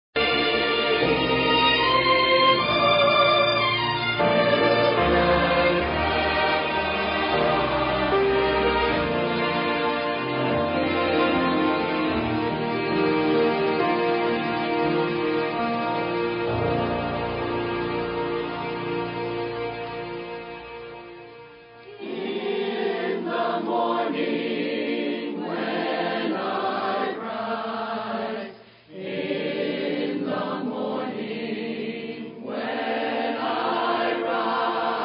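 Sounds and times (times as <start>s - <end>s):
choir singing: 0.2s - 20.3s, 21.8s - 35.0s.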